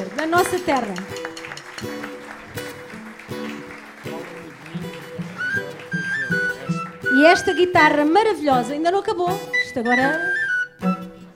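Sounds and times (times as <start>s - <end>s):
audience applause: 0.0s - 7.7s
speech: 0.2s - 1.1s, 7.2s - 11.0s.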